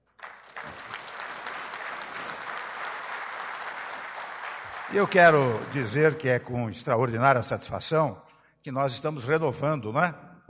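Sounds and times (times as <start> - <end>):
applause: 0.0 - 6.5
speech: 4.9 - 10.4.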